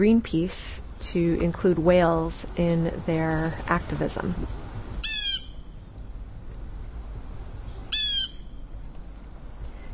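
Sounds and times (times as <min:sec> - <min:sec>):
speech: 0:00.0 - 0:04.6
blue jay calling: 0:04.5 - 0:06.2, 0:07.0 - 0:08.7.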